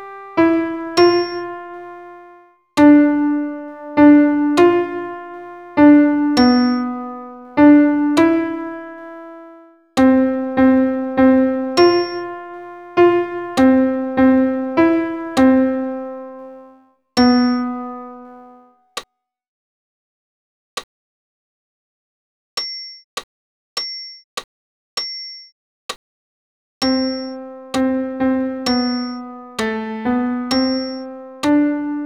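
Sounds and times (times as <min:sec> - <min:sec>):
solo piano for tenor voice: 0:00.0 - 0:18.7, 0:26.8 - 0:32.0.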